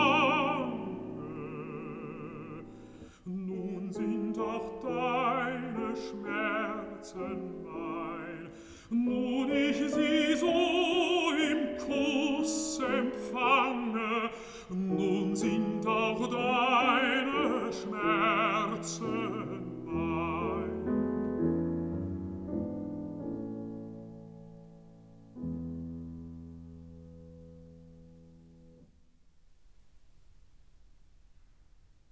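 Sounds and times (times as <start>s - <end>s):
person singing: 0.0s - 21.3s
piano: 0.0s - 32.0s.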